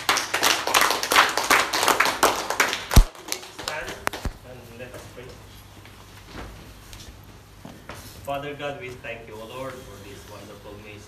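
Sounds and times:
audience clapping hands: 0.0s - 4.4s
speech: 8.3s - 11.0s.

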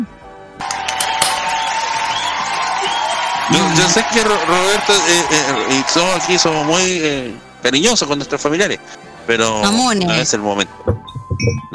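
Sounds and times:
audience applause and cheering: 0.6s - 7.5s
speech: 3.5s - 11.7s.

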